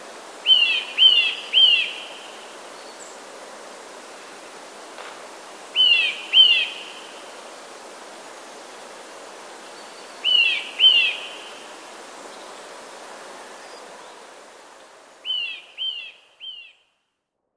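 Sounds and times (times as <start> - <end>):
Eurasian nuthatch calling: 0.5 - 2.3, 5.8 - 7.1, 10.2 - 11.6.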